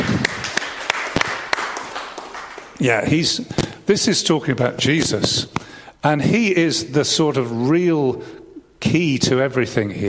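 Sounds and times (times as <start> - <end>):
round of applause: 0.0 - 2.8
speech: 2.8 - 10.0.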